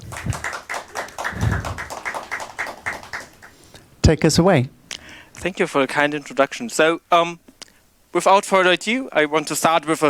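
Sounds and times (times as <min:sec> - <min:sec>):
audience applause: 0:00.0 - 0:03.6
speech: 0:04.1 - 0:04.8, 0:05.4 - 0:07.4, 0:08.1 - 0:10.0.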